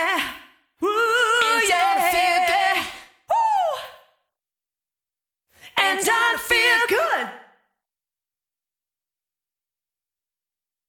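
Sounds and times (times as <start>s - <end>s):
person singing: 0.0s - 4.0s, 5.7s - 7.4s.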